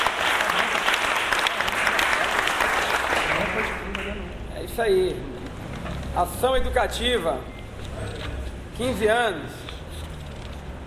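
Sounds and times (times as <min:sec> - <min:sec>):
audience applause: 0:00.0 - 0:04.2
speech: 0:04.8 - 0:05.3, 0:06.2 - 0:07.5, 0:08.8 - 0:09.6.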